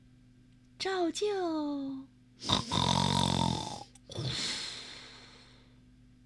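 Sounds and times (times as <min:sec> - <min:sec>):
speech: 0:00.8 - 0:03.1
hippo snoring: 0:02.4 - 0:04.3.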